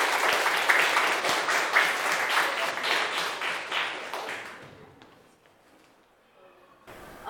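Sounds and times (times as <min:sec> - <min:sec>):
group applause: 0:00.0 - 0:05.1.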